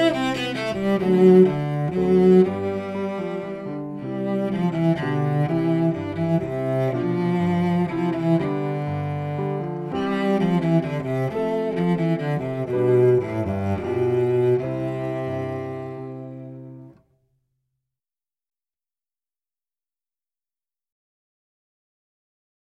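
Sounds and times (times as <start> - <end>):
cello playing a minuet: 0.0 - 17.0.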